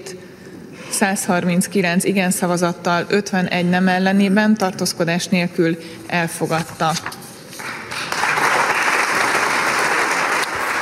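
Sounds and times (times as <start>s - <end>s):
speech: 0.9s - 7.1s
applause in the Hungarian parliament after a vote: 7.6s - 10.8s.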